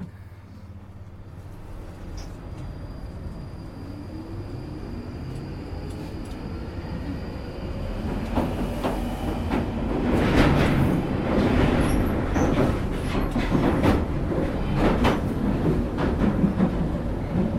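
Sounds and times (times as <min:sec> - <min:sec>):
train rumbling past: 0:00.0 - 0:17.5
wheels clacking and rattling on rail: 0:07.9 - 0:17.5.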